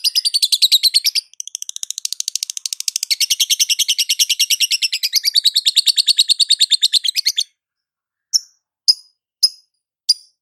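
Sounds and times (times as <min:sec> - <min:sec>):
lovebird calling: 0:00.0 - 0:07.5.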